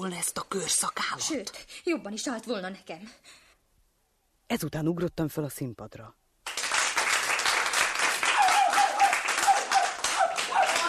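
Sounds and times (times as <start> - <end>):
speech: 0.0 - 3.4, 4.5 - 6.2
crowd thunderous applause: 6.4 - 10.8.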